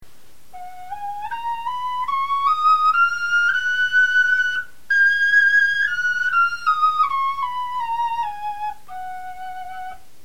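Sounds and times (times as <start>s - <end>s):
bone flutes playing a scale: 0.5s - 10.1s.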